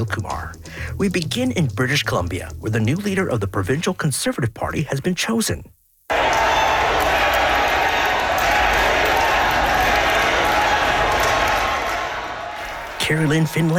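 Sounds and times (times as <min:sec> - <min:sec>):
speech: 0:00.0 - 0:05.8, 0:13.1 - 0:13.7
crowd of supporters cheering and chanting a name: 0:06.1 - 0:13.7.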